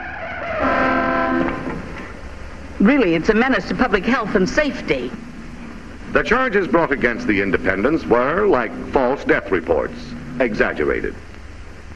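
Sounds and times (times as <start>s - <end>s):
steady noise: 0.0s - 11.9s
car horn honking during a near crash in an old film scene: 0.6s - 1.8s
speech: 2.8s - 5.2s, 6.1s - 11.3s.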